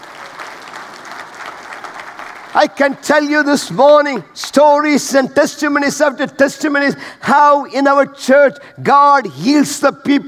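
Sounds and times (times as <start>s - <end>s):
audience clapping: 0.0s - 3.6s
speech: 2.6s - 10.2s.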